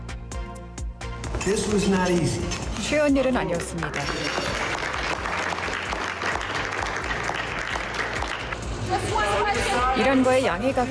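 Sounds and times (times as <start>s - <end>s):
speech: 1.4s - 4.6s, 8.9s - 10.9s
world leaders including President Macron applauding: 2.1s - 8.9s.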